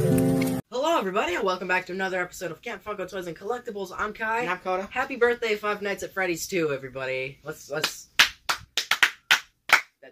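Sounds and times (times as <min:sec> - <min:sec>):
speech: 0:01.0 - 0:08.1
slow unenthusiastic hand claps: 0:07.8 - 0:10.1.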